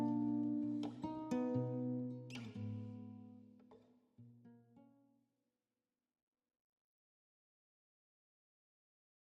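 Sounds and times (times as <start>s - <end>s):
guitar: 0.0s - 5.1s.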